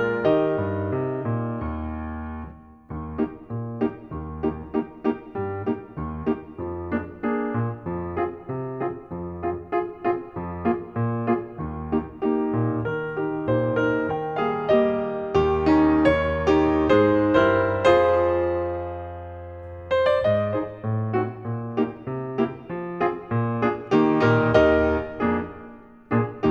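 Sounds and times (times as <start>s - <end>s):
piano accompaniment: 0.0s - 26.4s.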